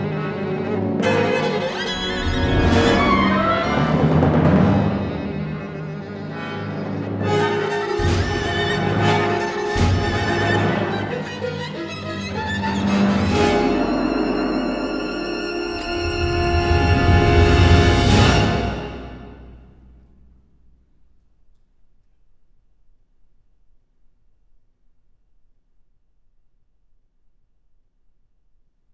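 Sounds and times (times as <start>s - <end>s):
violin concerto coda: 0.0s - 19.4s.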